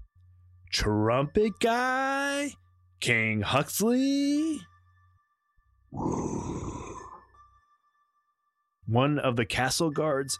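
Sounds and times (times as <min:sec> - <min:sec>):
speech: 0:00.8 - 0:04.7, 0:08.9 - 0:10.3
creature growling outside a door: 0:06.0 - 0:07.2.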